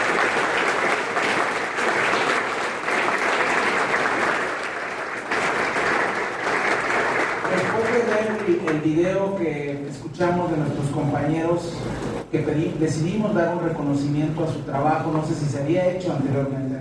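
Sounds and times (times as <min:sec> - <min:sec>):
crowd clapping: 0:00.0 - 0:09.2
speech: 0:08.8 - 0:16.8.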